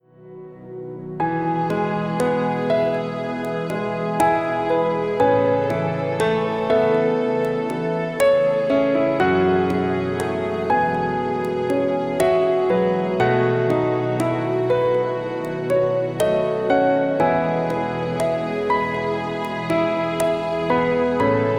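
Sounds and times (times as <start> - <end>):
relaxing piano music: 0.0 - 21.5.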